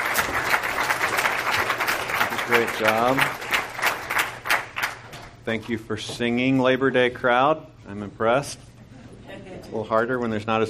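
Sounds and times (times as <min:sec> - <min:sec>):
audience applause: 0:00.0 - 0:05.1
speech: 0:02.5 - 0:03.4, 0:05.5 - 0:08.7, 0:09.7 - 0:10.6.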